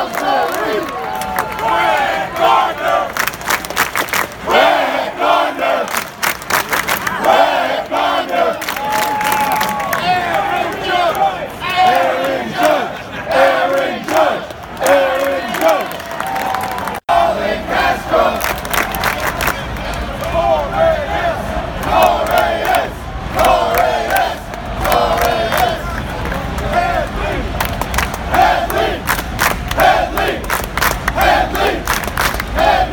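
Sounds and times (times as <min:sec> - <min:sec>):
baseball fans chanting stadium roll call: 0:00.0 - 0:32.9.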